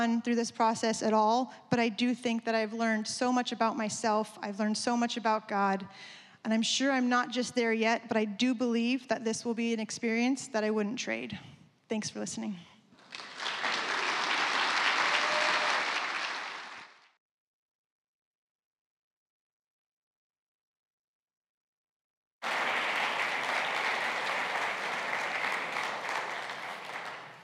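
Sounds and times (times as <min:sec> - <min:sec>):
speech: 0:00.0 - 0:13.3
audience applause: 0:13.0 - 0:17.1, 0:22.4 - 0:27.4.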